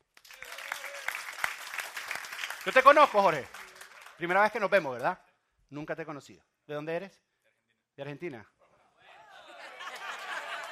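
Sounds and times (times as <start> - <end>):
applause: 0.0 - 5.2, 9.8 - 10.7
speech: 2.6 - 3.6, 4.2 - 7.3, 8.0 - 8.6
laughter: 8.6 - 10.7.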